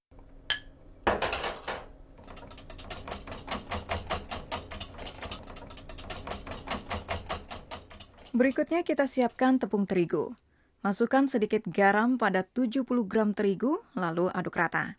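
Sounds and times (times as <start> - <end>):
whisk beating honey and milk mixture into beaten eggs in a bowl: 2.2 - 10.0
speech: 8.4 - 14.9.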